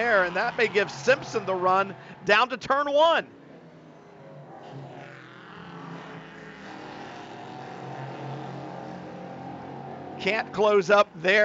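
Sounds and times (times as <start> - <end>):
speech: 0.0 - 3.4, 10.2 - 11.4
faint shifting whine: 0.0 - 11.4
prototype race cars braking into turn 10 at Road Atlanta: 0.0 - 11.4.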